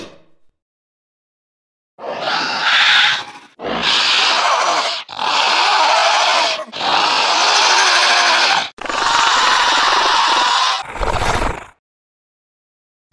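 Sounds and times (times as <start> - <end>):
raptor calls: 2.0 - 11.6.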